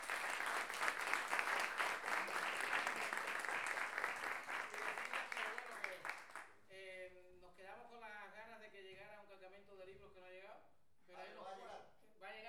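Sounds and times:
audience applause at a masterclass: 0:00.0 - 0:06.5.

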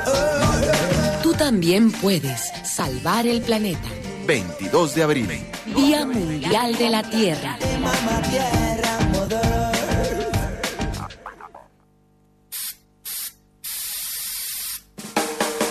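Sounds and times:
loud music: 0:00.0 - 0:02.3, 0:02.9 - 0:11.6
speech: 0:01.4 - 0:09.4
aerosol spray can spraying: 0:12.5 - 0:14.9.

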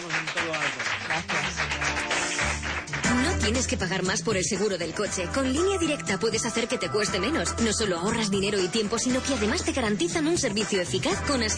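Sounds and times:
studio audience applause: 0:00.0 - 0:03.6
speech: 0:03.4 - 0:11.5.

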